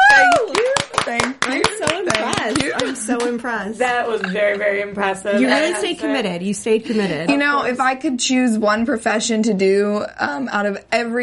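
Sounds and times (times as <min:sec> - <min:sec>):
audience applause: 0:00.0 - 0:02.9
speech: 0:02.8 - 0:11.2.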